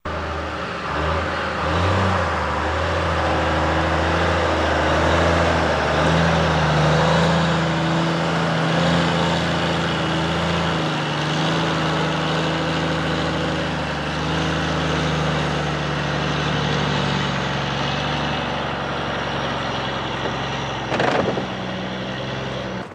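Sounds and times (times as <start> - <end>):
diesel truck idling: 0.0 - 22.9.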